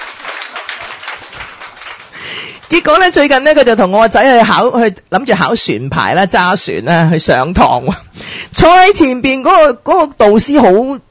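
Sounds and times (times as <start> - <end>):
audience applause at a talk with a slide presentation: 0.0 - 2.9
speech: 2.7 - 11.0.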